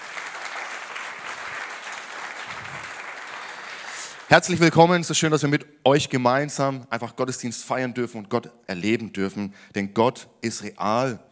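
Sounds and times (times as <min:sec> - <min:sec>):
audience applause: 0:00.0 - 0:04.3
speech: 0:04.3 - 0:11.3.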